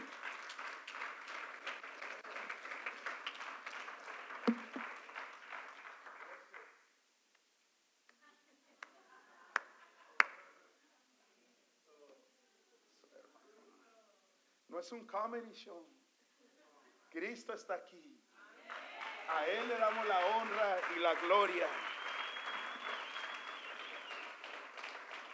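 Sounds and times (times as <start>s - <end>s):
audience applauding: 0.0s - 6.8s, 18.6s - 25.3s
sharp taps and clicks: 4.5s - 4.8s
speech: 14.8s - 16.0s, 17.2s - 18.2s, 19.3s - 21.9s.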